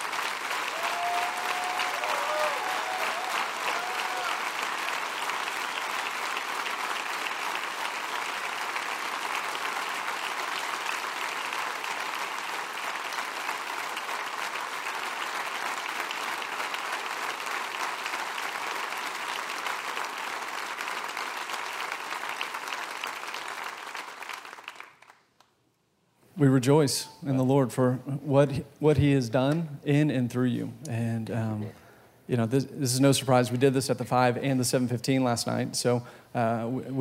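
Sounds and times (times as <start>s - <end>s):
church congregation applauding to welcome a speaker: 0.0s - 25.5s
speech: 26.4s - 37.0s.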